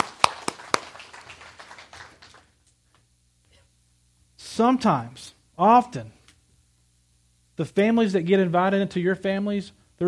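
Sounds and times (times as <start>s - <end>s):
audience applause: 0.0s - 2.6s
speech: 4.6s - 6.2s, 7.6s - 10.0s.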